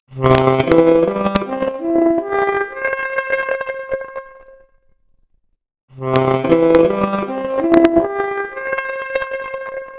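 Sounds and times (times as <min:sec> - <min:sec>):
noisy 4-bit saxophone arpeggio: 0:00.2 - 0:03.8, 0:06.0 - 0:09.9.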